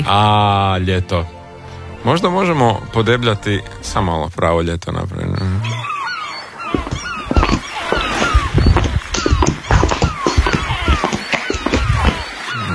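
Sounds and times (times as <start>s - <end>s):
speech: 0.0s - 1.4s, 2.0s - 5.9s
seagull calls from a summer beach sound effect: 5.4s - 12.7s
thumping and scraping on laminate: 6.7s - 12.4s.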